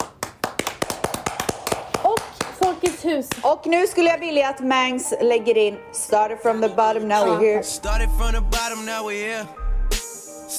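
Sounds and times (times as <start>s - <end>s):
applause: 0.0s - 3.4s
speech: 3.0s - 9.6s.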